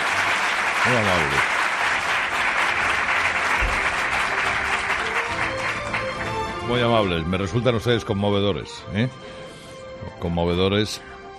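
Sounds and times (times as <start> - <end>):
audience applauding: 0.0 - 7.3
speech: 0.8 - 1.6, 6.7 - 9.4, 10.0 - 11.1.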